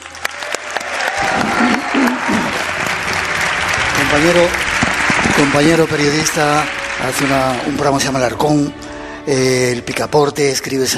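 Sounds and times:
voices cheering: 0:00.0 - 0:07.6
audience applause: 0:00.0 - 0:08.6
speech: 0:04.1 - 0:04.6, 0:05.3 - 0:10.9.

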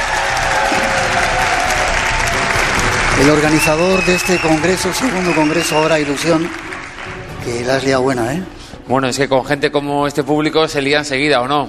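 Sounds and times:
audience applause: 0:00.0 - 0:07.8
speech: 0:03.2 - 0:06.7, 0:07.4 - 0:11.6.

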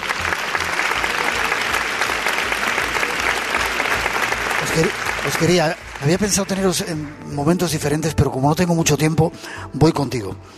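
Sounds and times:
audience applause: 0:00.0 - 0:07.8
speech: 0:04.8 - 0:10.5.

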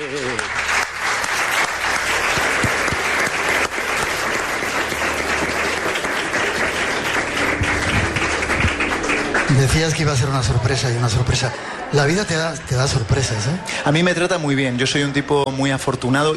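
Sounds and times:
applause: 0:00.0 - 0:11.3
speech: 0:00.1 - 0:00.6, 0:09.6 - 0:16.3.

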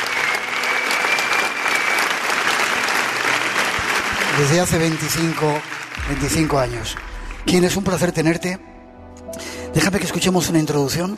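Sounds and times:
audience applause: 0:00.0 - 0:08.4
speech: 0:04.4 - 0:08.7, 0:09.8 - 0:11.1.

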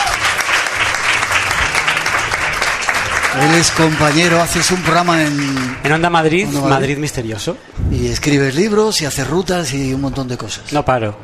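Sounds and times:
applause: 0:00.0 - 0:06.0
speech: 0:03.4 - 0:11.2.

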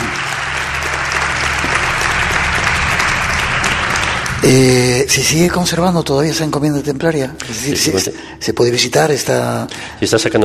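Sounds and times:
audience applause: 0:00.0 - 0:06.4
speech: 0:04.4 - 0:10.4.

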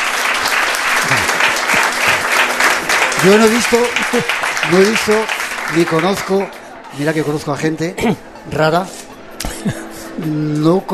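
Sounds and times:
crowd applause: 0:00.0 - 0:06.8
speech: 0:03.2 - 0:09.0, 0:09.6 - 0:10.9.

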